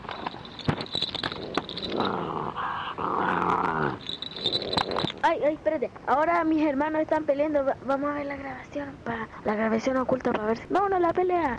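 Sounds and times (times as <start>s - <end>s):
small bell on a dog's collar: 0.0s - 5.6s
speech: 5.2s - 11.5s.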